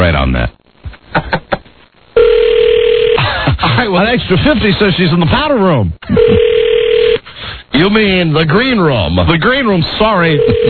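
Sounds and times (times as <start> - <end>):
speech: 0.1 - 0.6, 3.8 - 6.6, 7.7 - 10.6
telephone ring tone on an outgoing call: 2.2 - 3.2, 6.1 - 7.2, 10.3 - 10.6.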